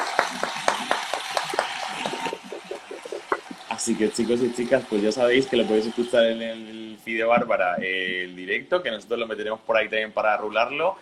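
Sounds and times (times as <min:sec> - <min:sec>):
audience applause at live show: 0:00.0 - 0:06.2
speech: 0:03.9 - 0:11.0.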